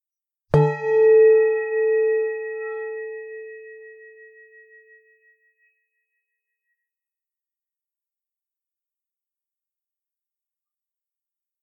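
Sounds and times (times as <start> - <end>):
meditation bell ringing: 0.6 - 5.3.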